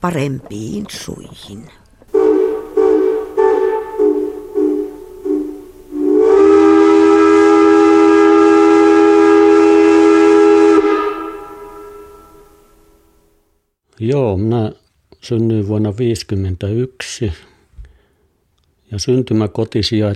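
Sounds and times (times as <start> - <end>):
speech: 0.0 - 1.8, 14.0 - 17.5, 18.9 - 20.1
steam locomotive whistle: 2.1 - 13.0.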